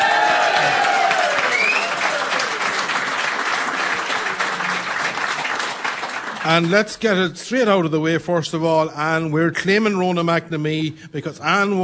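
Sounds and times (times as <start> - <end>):
audience applause: 0.0 - 6.9
speech: 6.4 - 11.8.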